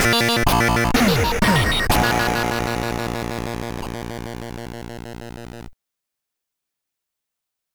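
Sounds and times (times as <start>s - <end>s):
SID stereo chiptune music: 0.2s - 5.7s.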